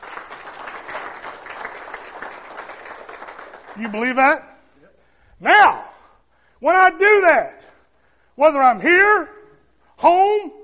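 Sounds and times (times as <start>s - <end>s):
audience applause: 0.0s - 4.2s
speech: 3.8s - 4.5s, 5.4s - 5.8s, 6.6s - 7.6s, 8.4s - 9.4s, 10.0s - 10.6s.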